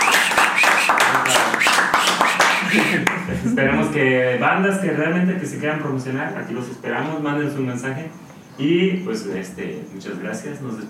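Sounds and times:
audience applause: 0.0s - 3.3s
laughter: 2.3s - 4.0s
speech: 2.7s - 10.8s.

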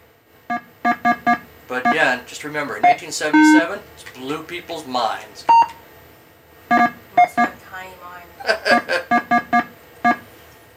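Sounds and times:
primitive electronic video game beeps: 0.5s - 2.0s, 2.8s - 3.6s, 6.7s - 7.5s, 9.1s - 10.2s
speech: 1.7s - 5.7s
laughter: 8.4s - 9.1s.

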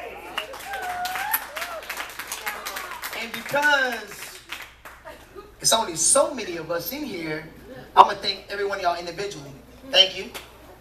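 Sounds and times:
cheering and whooping voices: 0.0s - 3.2s
comedy club audience applause: 0.0s - 5.1s
speech: 3.2s - 4.2s, 5.6s - 10.5s.

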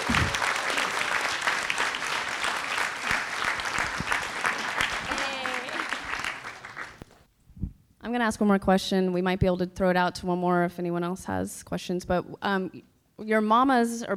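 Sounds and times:
crowd applause: 0.0s - 7.1s
speech: 8.1s - 14.1s.

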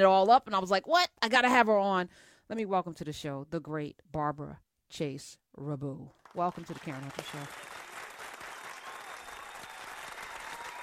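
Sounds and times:
speech: 0.0s - 7.7s
audience applause: 6.6s - 10.8s.

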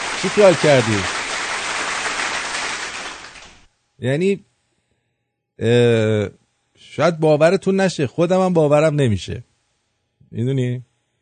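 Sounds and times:
audience applause at a comedy show: 0.0s - 3.7s
speech: 0.2s - 1.2s, 4.0s - 4.5s, 5.6s - 9.5s, 10.3s - 10.9s.

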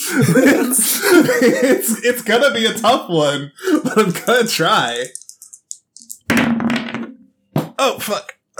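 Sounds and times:
laughter: 0.0s - 2.4s, 3.6s - 4.6s
speech: 0.1s - 5.2s, 7.8s - 8.5s
dice rolled on a table: 5.0s - 7.1s.

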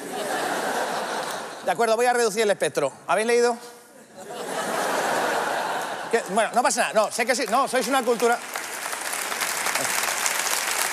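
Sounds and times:
laughter: 0.0s - 1.7s, 4.0s - 6.5s
speech: 1.7s - 3.8s, 6.1s - 8.6s
audience applause: 7.2s - 10.9s.

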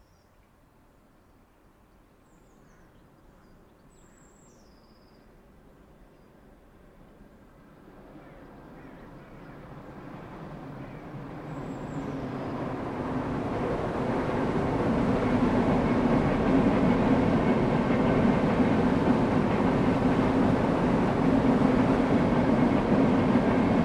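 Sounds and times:
old-fashioned steam locomotive roar: 7.8s - 23.8s.

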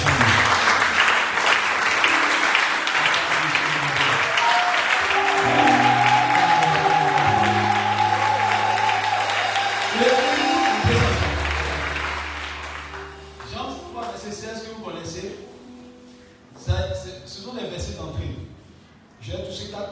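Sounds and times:
audience cheering: 0.0s - 1.4s, 2.1s - 13.3s
audience applauding: 0.0s - 14.2s.

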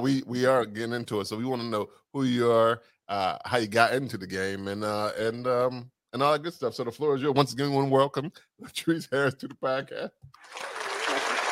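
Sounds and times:
speech: 0.0s - 10.9s
applause: 10.4s - 11.5s.

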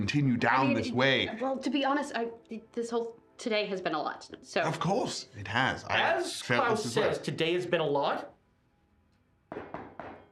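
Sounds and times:
speech: 0.0s - 8.3s
knocking on a door: 9.5s - 10.3s.

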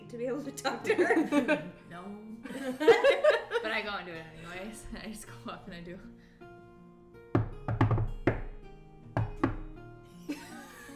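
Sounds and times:
speech: 0.1s - 6.3s
laughter: 0.9s - 1.7s, 2.4s - 3.8s, 10.3s - 10.9s
knocking on a door: 7.3s - 8.6s, 9.2s - 9.8s.

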